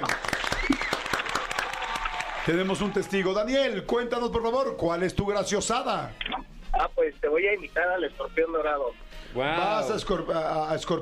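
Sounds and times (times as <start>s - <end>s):
crowd clapping: 0.0s - 3.2s
speech: 2.4s - 11.0s.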